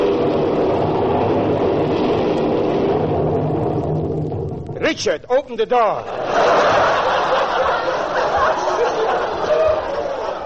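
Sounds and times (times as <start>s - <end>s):
rumbling thunder: 0.0s - 4.9s
speech: 4.9s - 6.7s
laughter: 6.0s - 10.4s.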